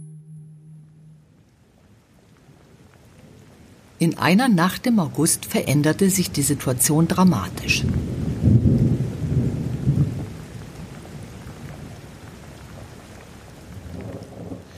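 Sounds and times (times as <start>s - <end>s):
steady hiss of summer rain: 1.1s - 14.7s
speech: 4.0s - 8.2s
deep heavy rumble of summer thunder: 7.8s - 12.6s, 13.7s - 14.7s.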